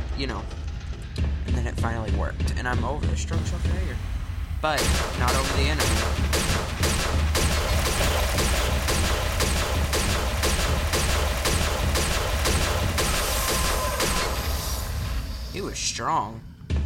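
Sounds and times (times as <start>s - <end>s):
speech: 0.2s - 0.6s, 1.2s - 6.9s, 15.6s - 16.5s
video game explosions: 4.6s - 15.7s.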